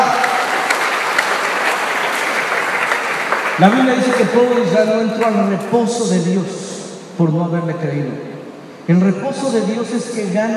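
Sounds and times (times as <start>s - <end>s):
audience applause: 0.0s - 5.5s
speech: 3.6s - 6.6s, 7.2s - 8.3s, 8.9s - 10.5s.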